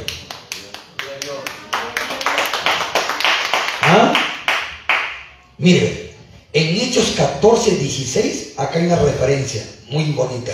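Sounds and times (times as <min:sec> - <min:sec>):
audience clapping hands: 0:00.0 - 0:05.2
speech: 0:05.6 - 0:06.0, 0:06.6 - 0:10.5.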